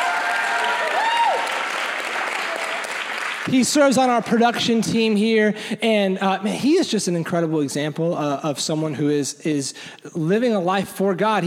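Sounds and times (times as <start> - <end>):
audience applause: 0.0 - 4.3
speech: 3.5 - 11.4.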